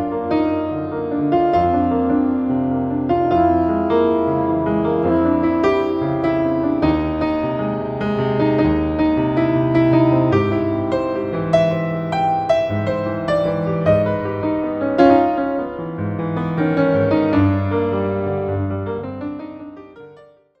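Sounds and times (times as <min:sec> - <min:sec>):
piano: 0:00.0 - 0:20.5
soprano saxophone: 0:03.1 - 0:09.7.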